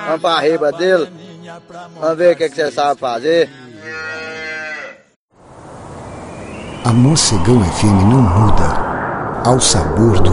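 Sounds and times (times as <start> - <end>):
speech: 0.1 - 3.6, 6.8 - 10.3
cattle mooing: 3.8 - 5.1.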